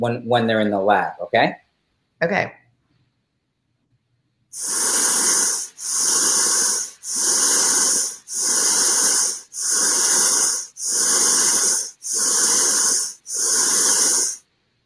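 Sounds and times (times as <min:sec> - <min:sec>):
speech: 0:00.0 - 0:01.6, 0:02.2 - 0:02.6, 0:04.5 - 0:04.9
pulsing hissing sound played to sleepers in lab: 0:04.5 - 0:14.4.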